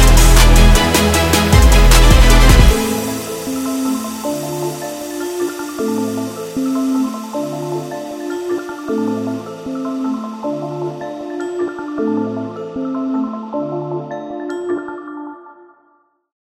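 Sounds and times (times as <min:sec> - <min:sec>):
orchestral trap music: 0:00.0 - 0:12.8.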